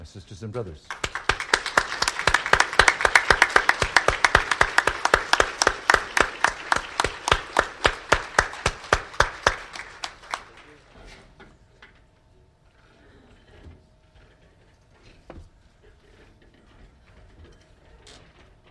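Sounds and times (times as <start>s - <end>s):
speech: 0.0s - 1.2s
audience applause: 0.9s - 10.9s.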